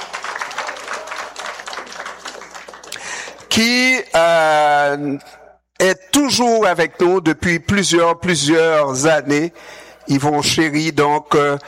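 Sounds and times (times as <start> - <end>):
crowd applauding: 0.0 - 3.6
speech: 3.6 - 11.6.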